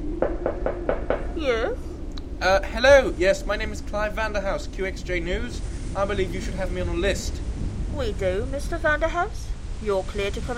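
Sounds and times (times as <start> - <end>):
knocking on huge iron door: 0.2 - 1.3
speech: 2.4 - 7.4, 7.9 - 10.5.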